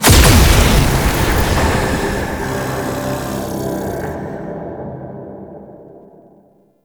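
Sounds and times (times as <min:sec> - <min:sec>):
portal shattering open: 0:00.0 - 0:04.4.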